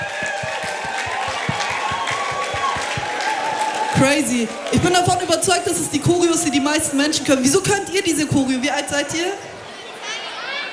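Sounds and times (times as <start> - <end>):
audience applause: 0.0 - 5.3
speech: 4.0 - 9.5.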